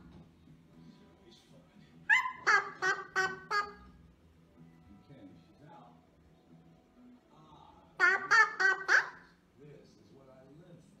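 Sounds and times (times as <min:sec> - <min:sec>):
faint low hum: 0:00.0 - 0:10.9
eclectus parrot squawking: 0:02.0 - 0:04.0, 0:08.0 - 0:09.4.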